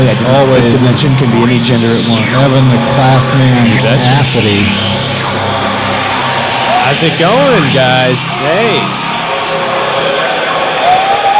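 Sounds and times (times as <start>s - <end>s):
speech: 0.1s - 5.6s, 6.9s - 9.0s
crowd cheering: 1.4s - 11.3s
thin whistle sliding upward: 1.6s - 11.3s.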